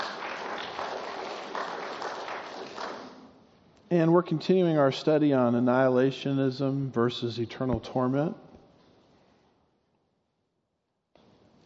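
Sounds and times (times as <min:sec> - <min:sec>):
audience applause: 0:00.0 - 0:03.2
speech: 0:03.9 - 0:08.4.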